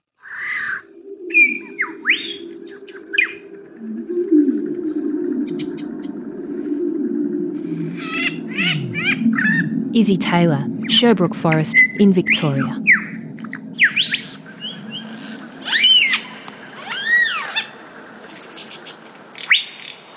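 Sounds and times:
lyrebird singing in Sherbrooke Forest: 0.3s - 6.3s, 7.9s - 9.8s, 11.7s - 19.6s
faint low hum: 0.7s - 19.3s
speech: 10.0s - 12.9s.

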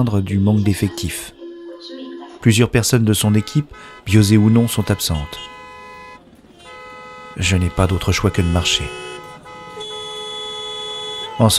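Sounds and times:
speech: 0.0s - 1.4s, 2.4s - 5.6s, 7.4s - 9.1s, 11.4s - 11.5s
car horns honking in a traffic jam: 2.8s - 11.5s.

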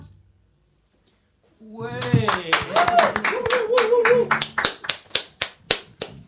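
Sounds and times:
small group clapping hands: 2.0s - 6.2s.

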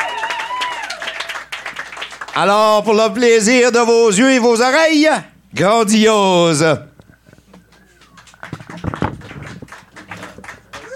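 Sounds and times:
audience applause: 0.0s - 2.6s, 7.6s - 10.9s
speech: 2.4s - 6.9s.

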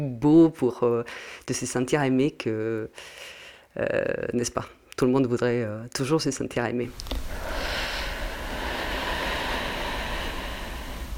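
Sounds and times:
speech: 0.0s - 7.4s
deep breathing exercise, exhaling and inhaling: 1.1s - 1.5s, 2.9s - 3.8s, 7.1s - 11.1s.

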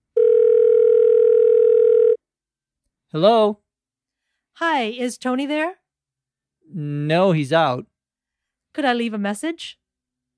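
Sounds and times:
telephone tone: 0.2s - 2.2s
speech: 3.1s - 3.6s, 4.6s - 5.8s, 6.7s - 7.9s, 8.8s - 9.8s.

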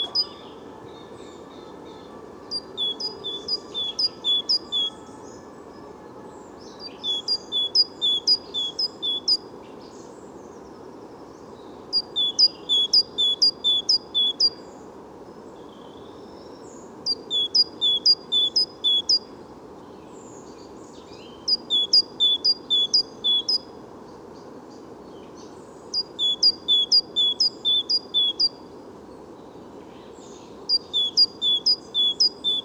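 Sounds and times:
great tit singing: 0.0s - 0.6s, 1.8s - 5.4s, 6.6s - 9.5s, 11.8s - 14.8s, 16.7s - 19.3s, 20.3s - 23.7s, 25.2s - 28.6s, 29.9s - 32.6s
low rumbling noise: 0.0s - 32.6s.

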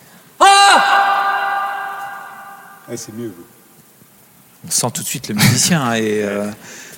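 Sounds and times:
hoarse human cry in a reverberant hall: 0.4s - 3.6s
speech: 2.9s - 3.6s, 4.6s - 6.9s.

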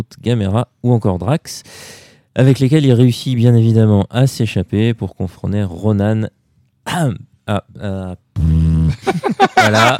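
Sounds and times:
speech: 0.1s - 8.2s, 9.0s - 9.9s
buzzy tonal fart sounds: 8.4s - 8.9s
laughter: 8.9s - 9.9s.

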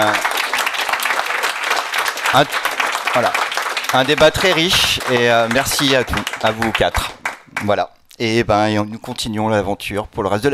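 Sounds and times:
speech: 0.0s - 0.3s, 2.3s - 10.5s
crowd clapping: 0.0s - 7.8s.

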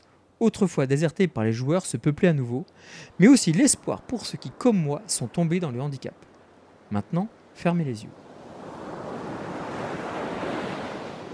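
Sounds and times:
wind: 0.0s - 11.3s
speech: 0.4s - 6.3s, 6.9s - 8.2s
waves of a warm sea with many islands: 2.7s - 11.3s.

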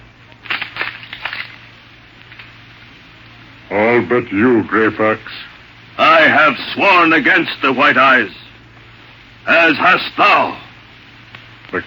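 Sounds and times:
low steady hum: 0.0s - 11.8s
wooden arrow shafts being broken: 0.3s - 2.6s
speech: 3.7s - 8.4s, 9.5s - 10.6s.

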